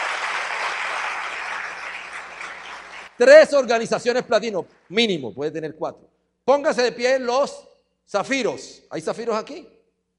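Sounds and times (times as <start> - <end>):
audience applause: 0.0 - 3.2
speech: 3.2 - 9.8.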